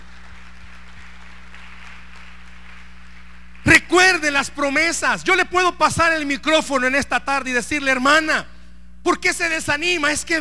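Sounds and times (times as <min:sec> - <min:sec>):
audience applause: 0:00.0 - 0:03.7
low electrical hum: 0:00.0 - 0:10.4
speech: 0:04.3 - 0:10.4.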